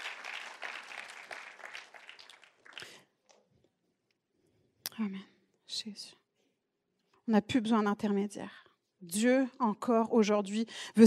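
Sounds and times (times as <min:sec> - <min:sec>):
audience applause: 0:00.0 - 0:03.0
speech: 0:05.0 - 0:06.2, 0:07.3 - 0:11.0.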